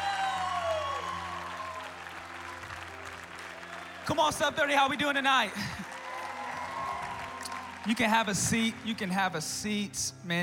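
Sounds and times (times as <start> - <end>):
church service audience applauding to welcome a preacher: 0.0 - 9.6
crowd noise: 0.0 - 9.6
speech: 4.1 - 5.9, 7.8 - 10.4.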